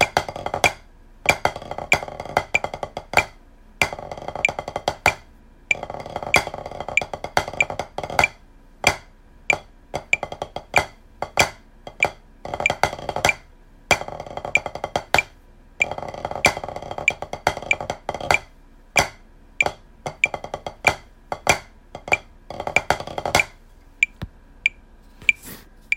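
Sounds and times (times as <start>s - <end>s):
drums: 0.0s - 25.9s.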